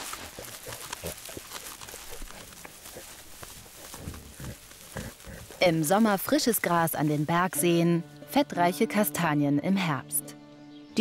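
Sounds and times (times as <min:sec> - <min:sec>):
Corsican pigs grunting and snuffling: 0:00.0 - 0:06.2
rustling and crunching: 0:00.0 - 0:07.7
speech: 0:05.6 - 0:10.2.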